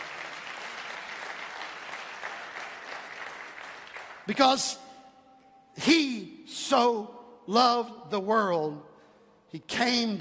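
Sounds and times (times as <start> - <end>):
audience clapping hands: 0.0 - 4.6
speech: 4.3 - 4.8, 5.8 - 8.9, 9.5 - 10.1.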